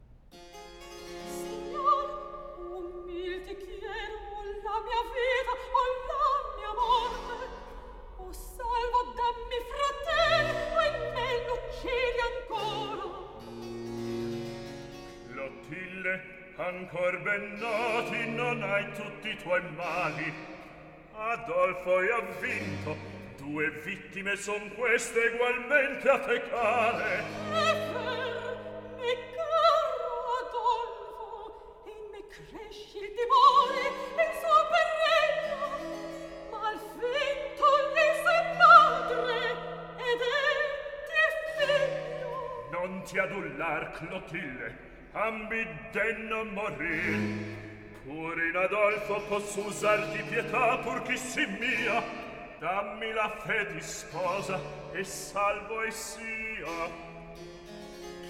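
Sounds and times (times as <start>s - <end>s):
recitative singing: 1.2s - 13.6s, 15.3s - 57.4s.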